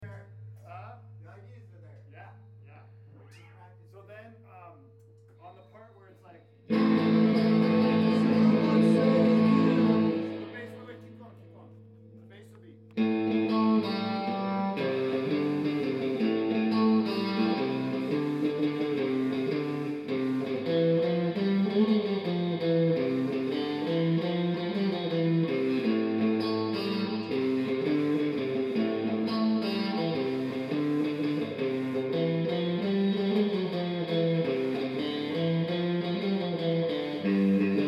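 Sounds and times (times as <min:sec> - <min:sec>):
bassline: 0:06.7 - 0:37.8.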